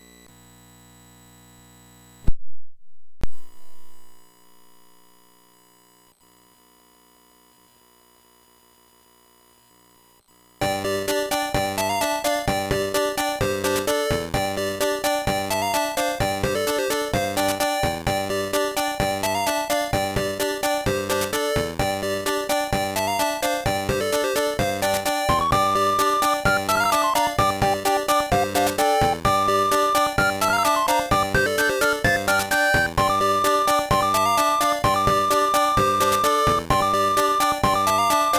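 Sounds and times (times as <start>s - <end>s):
Famicom cartridge game audio: 10.7s - 38.3s.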